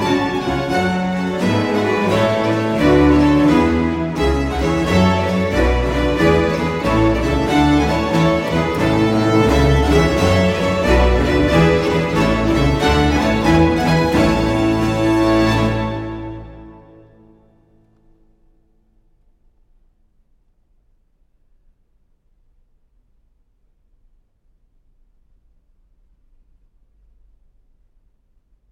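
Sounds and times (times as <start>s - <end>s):
string ensemble with continuo playing a gigue in A major: 0.0s - 18.2s.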